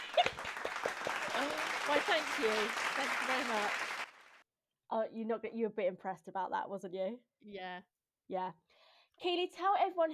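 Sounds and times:
small group clapping: 0.0s - 4.4s
speech: 1.9s - 3.8s, 4.9s - 8.6s, 9.2s - 10.1s.

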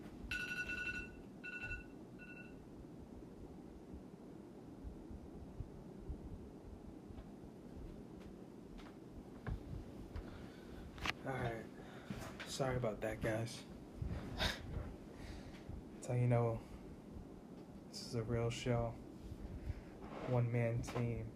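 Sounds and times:
electronic alarm beeping: 0.3s - 2.6s
low rumbling background: 2.6s - 21.3s
speech: 12.6s - 13.7s, 16.1s - 16.7s, 18.1s - 19.1s, 20.3s - 21.3s.

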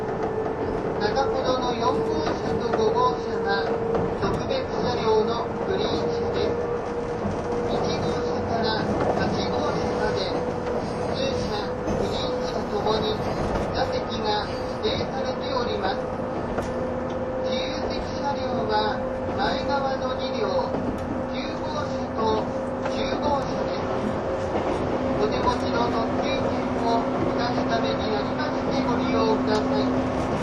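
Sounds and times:
185 series Odoriko train carriage rumble: 0.0s - 30.4s.

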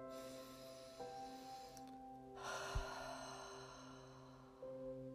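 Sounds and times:
deep breath in and out through the mouth in a breathing exercise: 0.1s - 5.0s.

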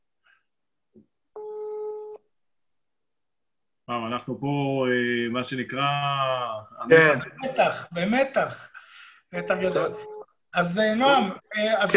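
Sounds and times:
speech: 3.9s - 11.9s
telephone ringing on a surprise call: 9.4s - 10.2s.

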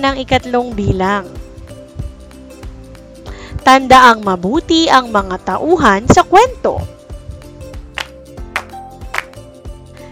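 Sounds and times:
speech: 0.0s - 1.4s, 3.7s - 6.9s
soft instrumental music: 0.0s - 10.1s
hand claps: 7.8s - 9.6s.

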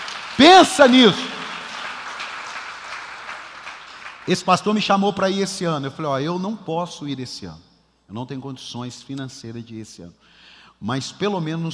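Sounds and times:
audience applauding: 0.0s - 4.4s
speech: 0.4s - 1.4s, 4.3s - 11.7s.

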